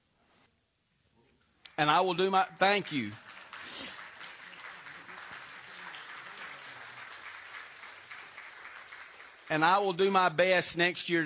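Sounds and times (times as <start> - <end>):
speech: 1.8 - 3.2, 9.5 - 11.2
audience applause: 2.3 - 10.1.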